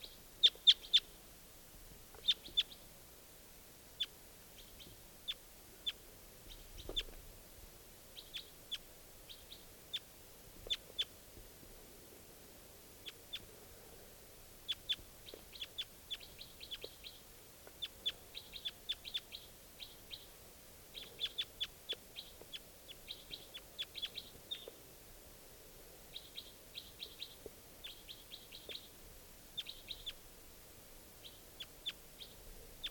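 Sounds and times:
lone wild bird chirping: 0.0s - 1.1s, 2.2s - 2.8s, 4.0s - 7.2s, 8.2s - 11.1s, 14.6s - 24.8s, 26.1s - 29.0s, 29.6s - 30.2s, 31.2s - 32.8s.

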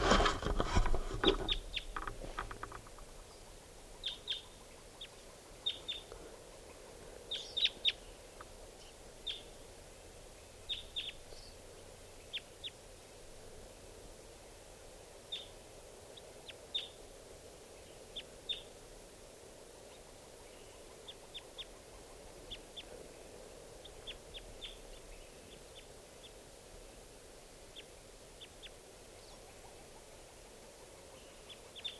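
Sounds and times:
rustling: 0.0s - 3.4s
hiss: 0.0s - 31.9s
wild bird calling in short high sharp chirps: 1.2s - 9.6s, 10.4s - 12.8s, 15.2s - 15.6s, 16.2s - 17.0s, 19.9s - 26.4s, 27.7s - 31.9s.

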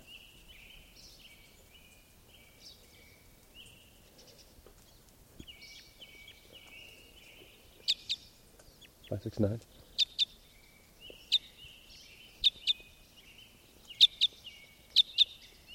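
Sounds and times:
type 5 bird flight calls: 5.6s - 10.5s, 12.2s - 15.7s.

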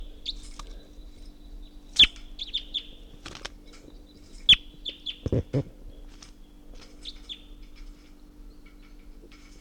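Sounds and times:
wild bird calling in a tree: 4.5s - 5.7s.

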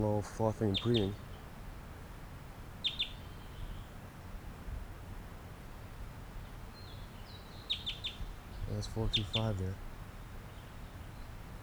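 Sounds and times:
speech: 0.0s - 1.3s, 8.8s - 9.9s
wild bird song: 0.0s - 1.5s, 2.8s - 3.9s, 6.4s - 9.8s.

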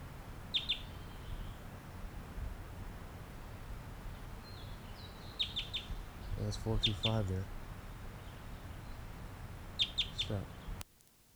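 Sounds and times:
bird singing: 0.0s - 10.8s
speech: 6.5s - 7.6s, 10.3s - 10.6s.

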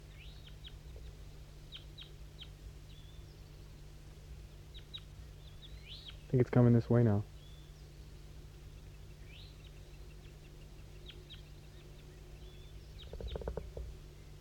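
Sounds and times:
wild bird singing down the hollow: 0.0s - 14.4s
speech: 6.3s - 7.3s.

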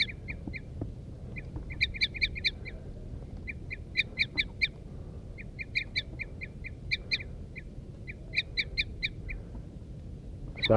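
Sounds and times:
wild birds calling female and male: 0.0s - 10.7s.

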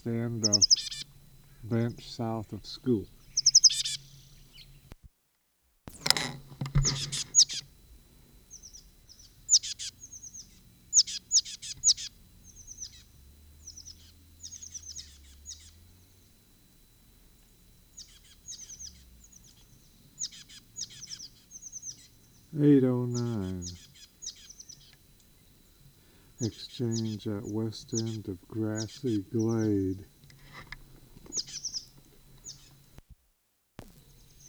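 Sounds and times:
speech: 0.0s - 1.0s, 1.6s - 3.2s, 26.8s - 30.2s
bird singing from a perch: 0.0s - 5.0s, 5.9s - 33.0s, 33.8s - 34.4s
sharp thump: 6.4s - 7.3s.

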